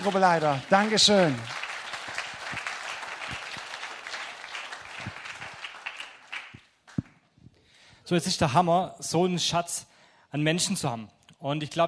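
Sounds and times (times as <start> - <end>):
speech: 0.0 - 1.6, 8.1 - 11.8
audience applause: 0.0 - 7.0.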